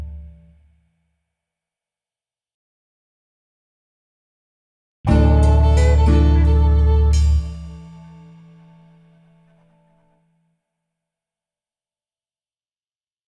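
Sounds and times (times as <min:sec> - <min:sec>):
cowboy music sting: 0:05.1 - 0:08.0.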